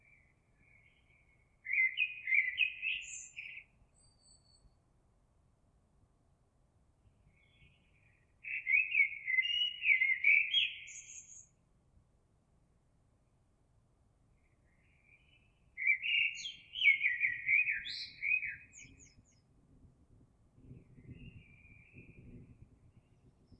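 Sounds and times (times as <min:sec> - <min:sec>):
blackbird: 0:00.0 - 0:04.8, 0:07.3 - 0:11.6, 0:14.4 - 0:19.6, 0:20.6 - 0:23.5.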